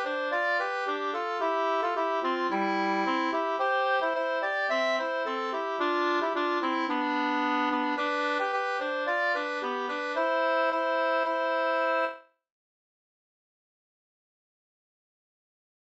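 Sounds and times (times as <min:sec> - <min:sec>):
folk walking tune: 0:00.0 - 0:12.2.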